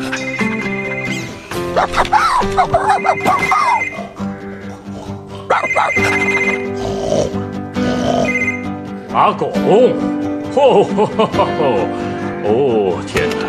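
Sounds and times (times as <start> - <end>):
mobile phone ringtone with repeating electronic melody: 0.1 - 1.6, 2.7 - 4.3, 5.5 - 6.8, 8.2 - 8.8
speech: 1.8 - 3.9, 5.5 - 7.4, 9.1 - 13.3.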